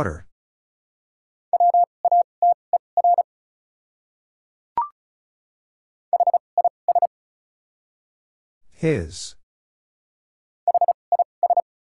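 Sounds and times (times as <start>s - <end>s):
speech: 0.0s - 0.3s, 8.8s - 9.4s
Morse code tones at 35 wpm: 1.6s - 3.3s, 6.1s - 7.1s, 10.7s - 11.6s.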